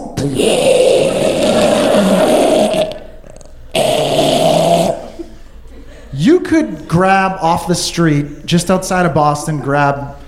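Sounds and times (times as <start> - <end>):
speech: 0.2 - 0.8, 6.6 - 10.2
voice imitating a man snoring in his sleep: 0.2 - 5.2.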